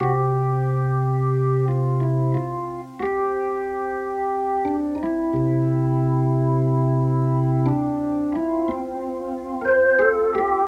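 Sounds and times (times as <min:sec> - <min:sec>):
organ: 0:00.0 - 0:10.6.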